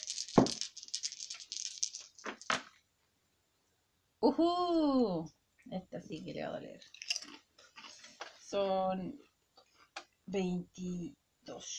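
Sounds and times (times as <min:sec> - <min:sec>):
dice rattling: 0:00.0 - 0:02.8
speech: 0:04.2 - 0:07.0, 0:08.5 - 0:09.3, 0:10.3 - 0:11.7.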